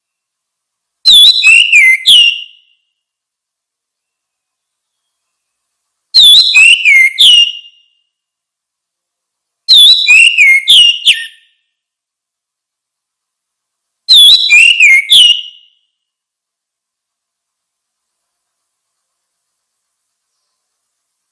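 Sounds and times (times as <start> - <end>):
orange-headed thrush song: 0.0 - 0.4, 1.0 - 3.1, 3.8 - 8.2, 9.7 - 11.8, 14.1 - 16.2, 18.9 - 21.0.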